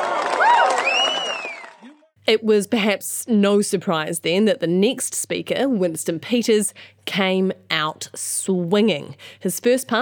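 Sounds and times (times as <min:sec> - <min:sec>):
applause: 0:00.0 - 0:02.1
crowd cheering: 0:00.0 - 0:02.1
speech: 0:02.3 - 0:10.0.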